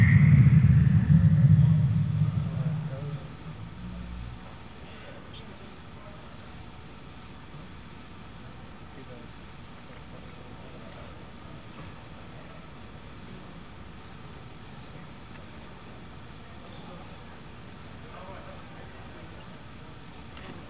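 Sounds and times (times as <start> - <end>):
soundcheck: 0.0 - 3.8.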